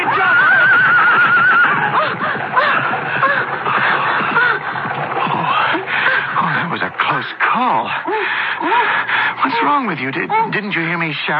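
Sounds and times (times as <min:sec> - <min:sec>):
horse-drawn chariot rushing by with clattering hooves: 0:00.0 - 0:07.5
laughter: 0:00.0 - 0:10.6
horses neighing: 0:00.0 - 0:11.2
speech: 0:09.9 - 0:11.3.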